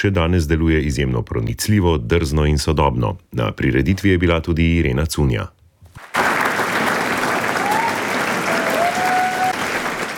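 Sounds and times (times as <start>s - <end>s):
speech: 0.0s - 5.6s
standing ovation applause in the Kosovel Hall: 6.0s - 10.1s.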